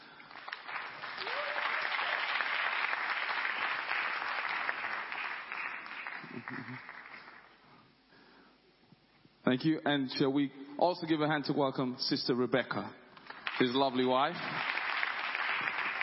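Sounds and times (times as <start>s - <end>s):
audience applause at a men's convention session welcoming a guest: 0.0s - 7.6s, 13.3s - 16.0s
speech: 6.4s - 7.0s, 9.5s - 13.0s, 13.6s - 14.8s.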